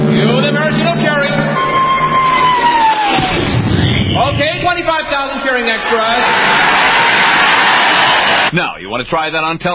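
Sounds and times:
huge crowd of extras cheering and roaring: 0:00.1 - 0:08.5
falling whistle-like tone: 0:01.4 - 0:03.7
speech: 0:09.0 - 0:09.7.

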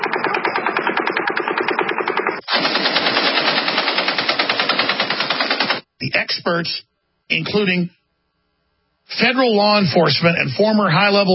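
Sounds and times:
belt-fed light machine gun burst: 0:00.0 - 0:05.9
sustained full-auto gunfire: 0:00.0 - 0:05.9
speech: 0:06.3 - 0:08.0, 0:09.1 - 0:11.3.

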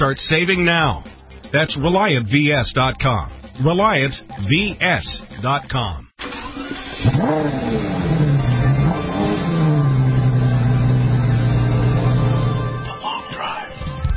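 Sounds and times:
speech: 0:00.0 - 0:06.0, 0:07.1 - 0:08.0
Mercedes E63 AMG engine revving: 0:06.2 - 0:13.0.

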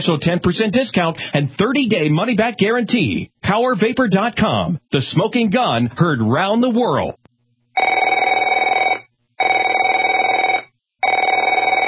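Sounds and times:
speech: 0:00.0 - 0:07.2
telephone ringing: 0:07.8 - 0:11.8.

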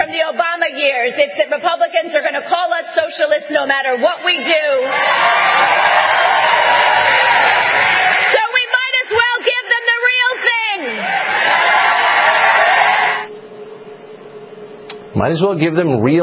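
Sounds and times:
speech: 0:00.7 - 0:05.8, 0:15.2 - 0:16.2
crowd cheering: 0:04.1 - 0:13.3.

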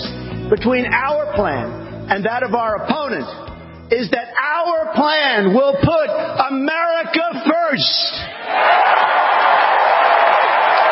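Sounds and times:
speech: 0:00.5 - 0:09.6
crowd cheering Donald Trump's Republican National Convention acceptance speech: 0:08.3 - 0:10.9.

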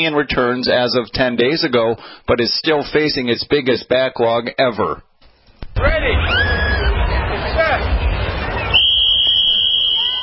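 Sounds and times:
speech: 0:00.0 - 0:05.1, 0:05.8 - 0:06.4
crowd murmuring and chattering: 0:05.9 - 0:08.8
long shrill whistle blast to start event: 0:08.7 - 0:10.2.

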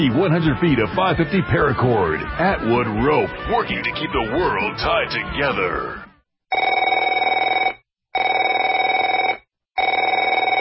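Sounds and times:
speech: 0:00.0 - 0:06.1
telephone ringing with bell tone: 0:06.5 - 0:10.6.

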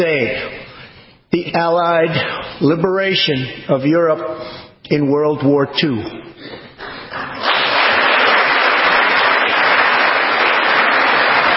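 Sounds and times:
speech: 0:01.5 - 0:06.6
hand clapping: 0:07.1 - 0:11.5.

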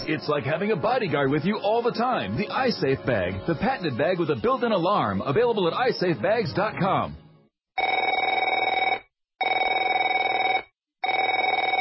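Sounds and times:
speech: 0:00.0 - 0:07.2
telephone ringing: 0:07.8 - 0:11.7.

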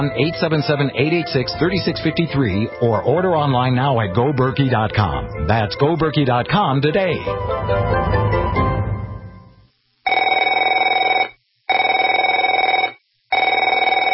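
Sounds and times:
speech: 0:00.0 - 0:08.0
telephone ringing: 0:10.1 - 0:14.1.

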